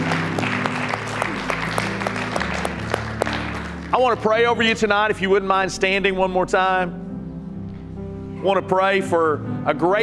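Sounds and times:
audience applause: 0.0 - 4.2
speech: 4.0 - 7.0, 8.4 - 10.0.

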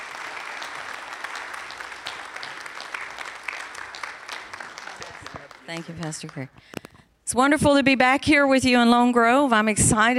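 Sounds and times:
church congregation applauding to welcome a missionary speaker: 0.0 - 6.8
speech: 5.7 - 10.1.

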